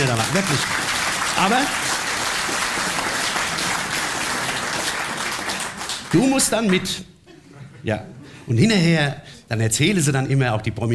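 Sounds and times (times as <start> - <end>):
speech: 0.0 - 2.0, 6.1 - 7.2, 7.8 - 10.9
audience applause: 0.0 - 7.0.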